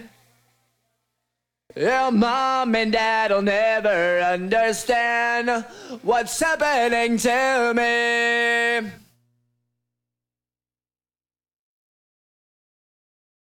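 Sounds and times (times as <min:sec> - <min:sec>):
person singing: 0:01.7 - 0:09.0.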